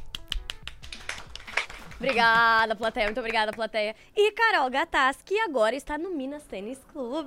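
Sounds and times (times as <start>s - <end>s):
hand clapping: 0.0s - 3.7s
speech: 2.0s - 7.2s.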